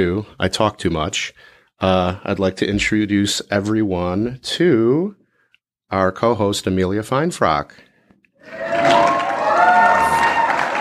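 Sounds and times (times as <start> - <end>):
speech: 0.0 - 5.2, 5.9 - 9.1
audience applause and cheering: 8.5 - 10.7.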